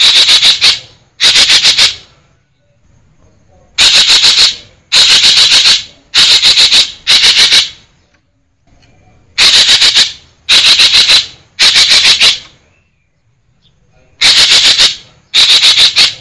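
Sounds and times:
green magpie harsh chattering: 0.0 - 2.0, 3.8 - 7.8, 9.4 - 12.5, 14.2 - 16.1.

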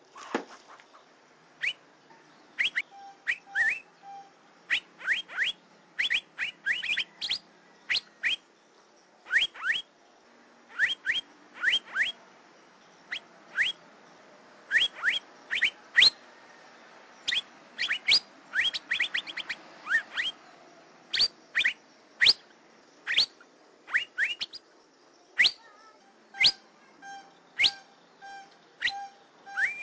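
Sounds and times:
Asian fairy-bluebird whistling: 1.6 - 1.8, 2.6 - 8.4, 9.3 - 9.9, 10.7 - 12.2, 13.1 - 13.8, 14.7 - 16.2, 17.3 - 20.4, 21.1 - 22.5, 23.1 - 24.6, 25.4 - 25.7, 26.4 - 29.8.

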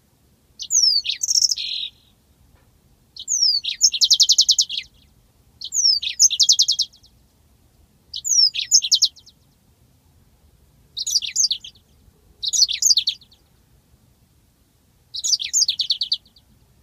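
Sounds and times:
yellow-fronted canary singing: 0.6 - 2.2, 3.2 - 7.2, 8.1 - 9.6, 11.0 - 13.6, 15.1 - 16.5.

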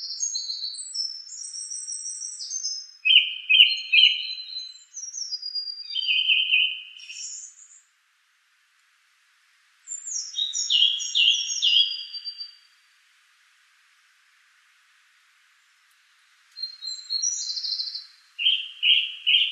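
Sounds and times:
song thrush singing: 0.0 - 7.9, 9.9 - 12.7, 16.6 - 19.5.

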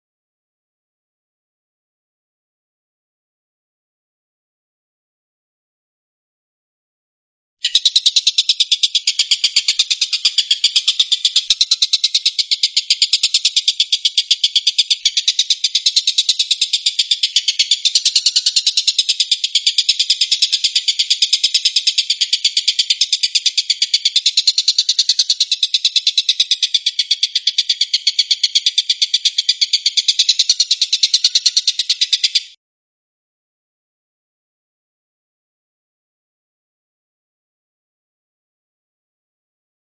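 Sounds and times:
stork-billed kingfisher rattling call: 7.6 - 32.6.

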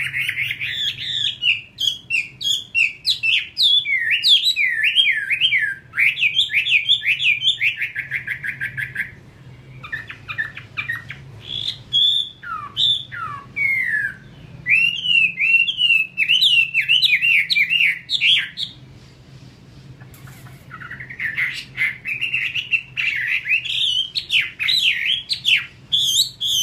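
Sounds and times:
Chinese hwamei song: 0.0 - 19.2, 20.0 - 26.6.

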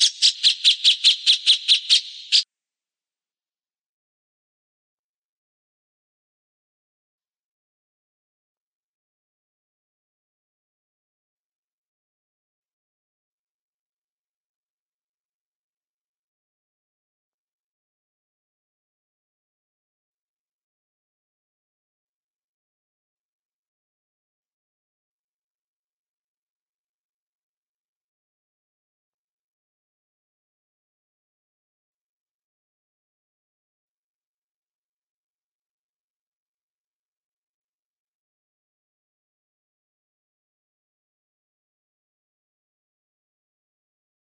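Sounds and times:
cucak jenggot bird calling: 0.0 - 2.4.

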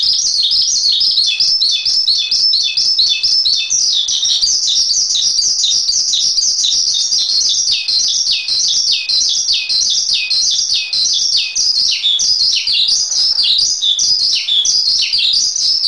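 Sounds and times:
Asian pied starling singing: 0.0 - 15.8.

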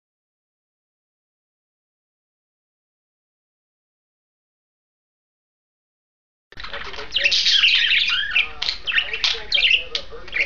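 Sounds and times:
pair of budgerigars warbling chatter: 6.6 - 10.4.

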